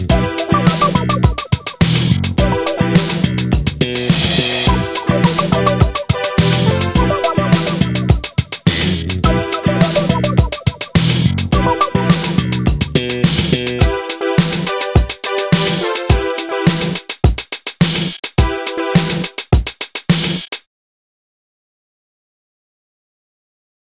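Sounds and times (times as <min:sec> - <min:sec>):
hip hop music: 0:00.0 - 0:17.1, 0:18.4 - 0:19.4.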